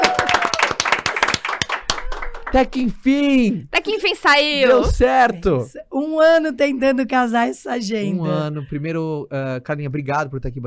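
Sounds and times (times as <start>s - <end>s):
audience applause: 0.0s - 2.8s
speech: 2.5s - 10.6s.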